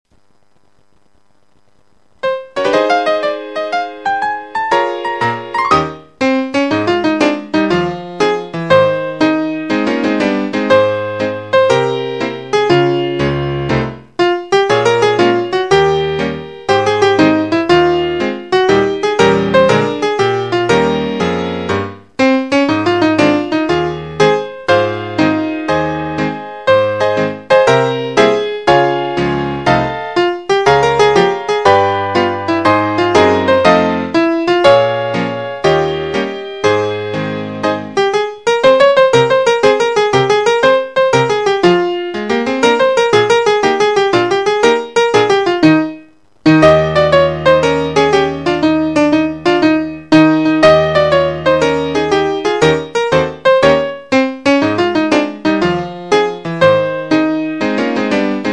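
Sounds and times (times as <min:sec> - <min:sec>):
Christmas piano music: 0:02.2 - 0:58.5.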